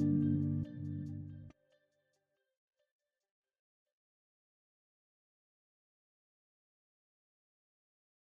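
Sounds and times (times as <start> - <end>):
new guitar: 0.0 - 1.5.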